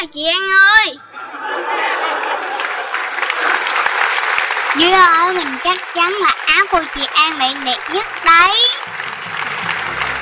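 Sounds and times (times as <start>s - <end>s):
speech: 0.1s - 1.1s, 4.8s - 8.7s
laughter: 1.0s - 4.2s
group clapping in celebration: 2.1s - 10.2s.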